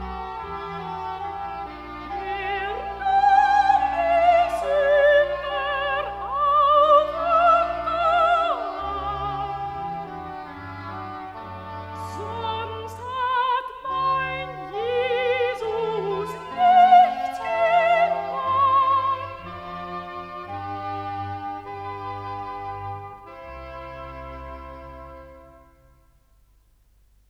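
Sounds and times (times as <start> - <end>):
soprano singing recitative: 0.2 - 20.6.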